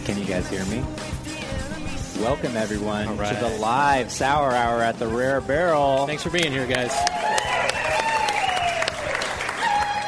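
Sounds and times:
speech: 0.1s - 1.2s, 2.2s - 7.3s
loud audience applause: 6.4s - 10.0s.

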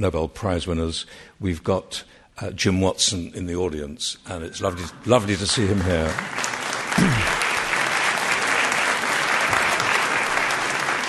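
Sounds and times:
speech: 0.0s - 7.4s
audience applause: 4.7s - 11.0s.

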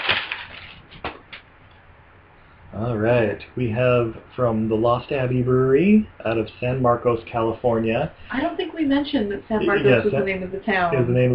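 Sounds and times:
paper bag rustling as a beer is pulled out: 0.0s - 1.3s
speech: 2.8s - 11.3s.

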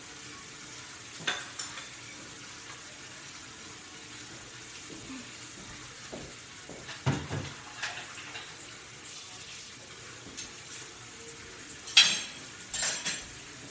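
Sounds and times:
water flowing from a running tap: 0.0s - 13.6s
crockery clinking: 1.1s - 2.1s, 6.8s - 8.7s, 11.8s - 13.6s.

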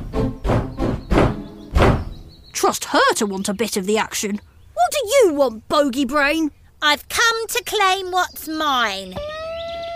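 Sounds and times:
hammering on a door: 0.4s - 2.2s
speech: 2.6s - 9.3s.

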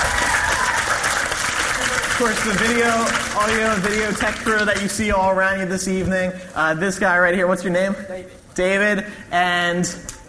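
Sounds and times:
audience applause: 0.0s - 5.1s
speech: 2.2s - 10.2s.

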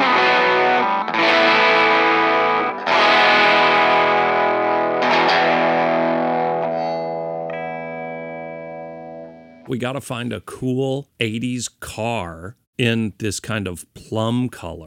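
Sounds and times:
1983 Gibson Futura distorted electric guitar strumming chords: 0.0s - 9.7s
speech: 9.7s - 14.8s.

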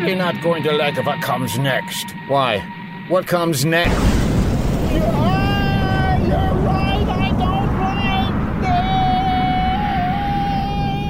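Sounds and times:
speech: 0.0s - 4.2s, 4.9s - 5.4s
sustained high-pitched whine: 0.0s - 11.0s
space shuttle roaring off into space: 3.8s - 11.0s.

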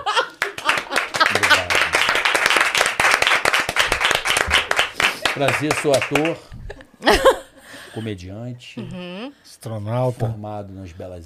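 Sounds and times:
laughter: 0.0s - 2.3s, 6.2s - 7.6s
crowd applauding: 0.0s - 6.5s
speech: 5.4s - 7.4s, 8.0s - 11.2s.

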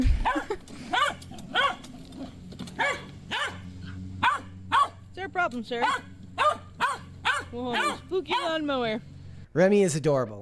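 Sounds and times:
corgi barking in short sharp yaps: 0.2s - 1.9s, 2.8s - 5.0s, 5.8s - 8.6s
speech: 5.5s - 6.1s, 7.5s - 10.4s.

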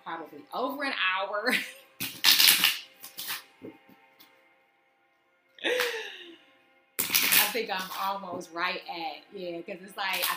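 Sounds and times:
speech: 0.1s - 1.8s, 7.6s - 10.3s
tarot cards being shuffled: 2.0s - 4.3s, 7.0s - 8.1s.

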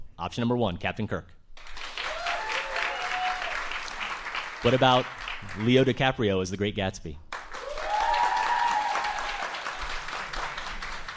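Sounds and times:
speech: 0.2s - 1.8s, 4.6s - 7.2s
audience clapping: 1.6s - 6.0s, 7.3s - 11.1s.

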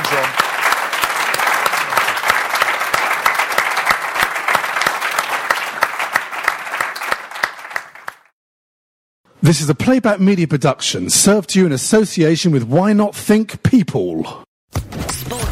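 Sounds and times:
audience applause: 0.0s - 8.3s
speech: 9.5s - 14.4s.

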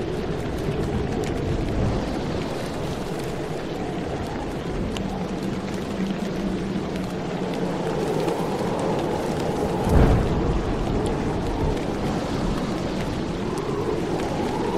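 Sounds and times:
steady rain: 0.0s - 14.7s
thunder low rumble: 0.0s - 14.7s
wind: 0.0s - 14.7s
sharp thunder crack: 9.8s - 10.9s.

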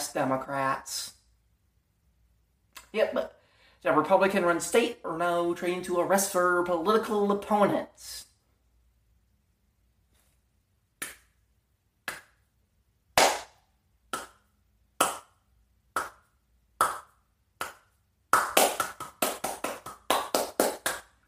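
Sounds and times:
speech: 0.2s - 1.1s, 2.9s - 8.3s
hand clapping, slow clap speeding up: 12.0s - 12.5s, 13.2s - 15.4s, 16.0s - 21.2s.

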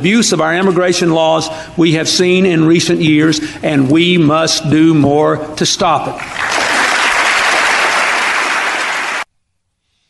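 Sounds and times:
speech: 0.0s - 6.6s
audience applause at a State of the Union address: 6.2s - 9.3s.

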